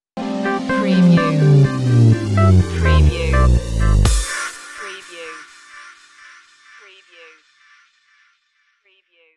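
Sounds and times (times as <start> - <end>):
bass stinger: 0.5 - 4.3.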